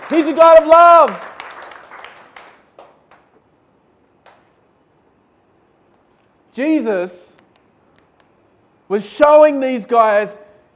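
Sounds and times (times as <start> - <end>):
audience clapping: 0.0 - 3.5, 4.2 - 4.6
speech: 0.1 - 1.3, 6.6 - 7.3, 8.9 - 10.7.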